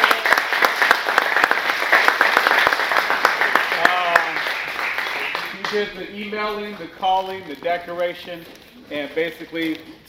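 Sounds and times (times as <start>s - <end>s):
audience applause: 0.0s - 6.0s
speech: 5.7s - 10.0s.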